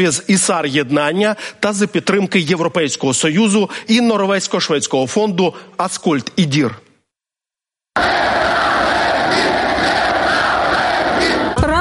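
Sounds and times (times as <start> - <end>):
speech: 0.0 - 6.8
crowd of protesters roaring and shouting: 8.0 - 11.8.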